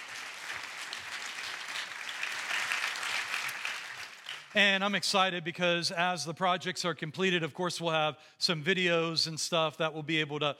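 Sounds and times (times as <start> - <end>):
audience applauding: 0.0 - 4.6
speech: 4.5 - 10.5.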